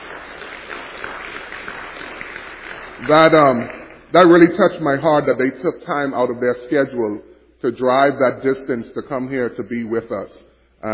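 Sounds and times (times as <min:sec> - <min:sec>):
audience applause: 0:00.0 - 0:03.8
speech: 0:03.0 - 0:10.9.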